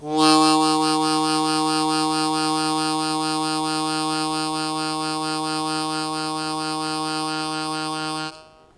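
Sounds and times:
harmonica sustained fast wah-wah note in E flat: 0:00.0 - 0:08.7.

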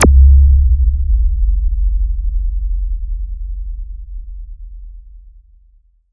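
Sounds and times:
sub bass zap: 0:00.0 - 0:03.9.

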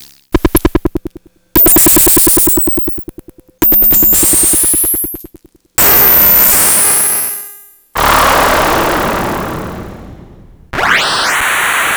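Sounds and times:
noise: 0:00.0 - 0:07.0, 0:08.0 - 0:11.9
beeps: 0:00.3 - 0:07.0.

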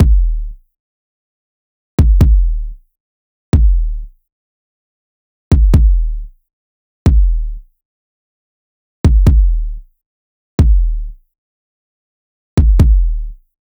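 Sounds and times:
kick drum loop 136: 0:00.0 - 0:00.6, 0:02.0 - 0:02.8, 0:03.6 - 0:04.1, 0:05.5 - 0:06.3, 0:07.1 - 0:07.6, 0:09.1 - 0:09.8, 0:10.6 - 0:11.2, 0:12.6 - 0:13.4.

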